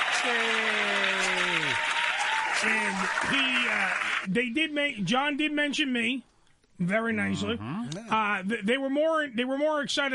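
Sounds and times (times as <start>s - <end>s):
dense applause: 0.0s - 4.3s
speech: 0.2s - 0.7s, 2.6s - 10.1s.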